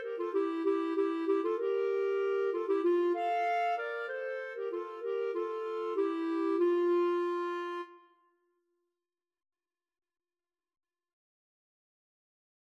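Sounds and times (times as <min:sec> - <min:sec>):
clarinet trio: 0:00.0 - 0:08.0.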